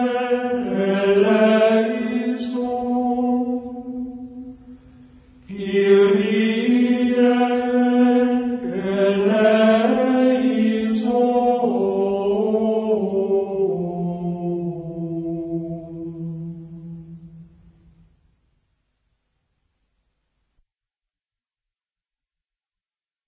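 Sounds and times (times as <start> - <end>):
Gregorian chant: 0.0 - 17.8.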